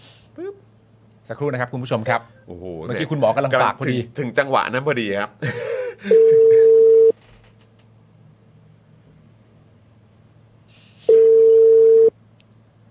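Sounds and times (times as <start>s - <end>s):
faint hum: 0.0s - 12.9s
speech: 1.3s - 6.6s
telephone busy tone after a dropped call: 6.1s - 7.1s, 11.1s - 12.1s.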